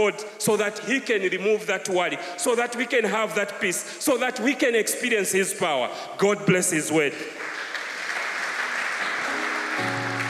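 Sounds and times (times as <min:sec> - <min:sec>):
speech: 0:00.0 - 0:07.6
audience applause: 0:07.3 - 0:10.2.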